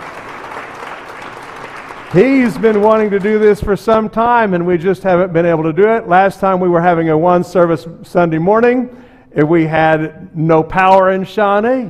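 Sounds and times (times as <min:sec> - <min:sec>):
audience clapping hands: 0:00.0 - 0:03.8
speech: 0:02.1 - 0:11.8.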